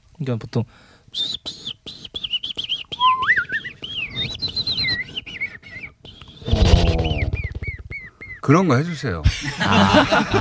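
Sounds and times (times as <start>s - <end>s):
speech: 0.2s - 1.4s, 8.5s - 10.4s
person whistling bird chirps: 1.1s - 8.5s
laughter: 9.3s - 10.4s.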